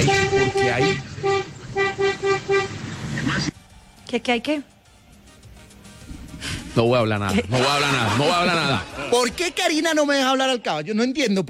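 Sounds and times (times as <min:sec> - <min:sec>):
car horn honking: 0:00.0 - 0:02.9
speech: 0:04.1 - 0:04.8, 0:06.8 - 0:11.4
laughter: 0:07.3 - 0:09.8.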